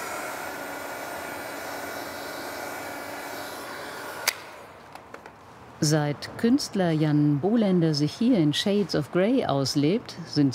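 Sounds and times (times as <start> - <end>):
hair dryer blowing: 0.0 - 4.8
speech: 5.8 - 10.5.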